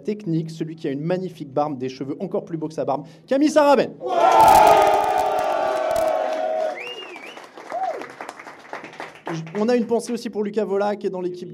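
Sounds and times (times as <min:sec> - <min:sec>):
speech: 0:00.0 - 0:05.0, 0:09.3 - 0:11.5
live audience cheering with shouts and whoops: 0:04.0 - 0:08.2
live audience applause: 0:04.2 - 0:09.7.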